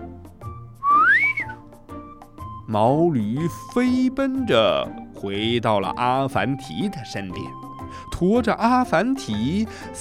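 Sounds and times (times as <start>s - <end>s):
whistle outside the door: 0.8s - 1.6s
speech: 2.7s - 9.9s.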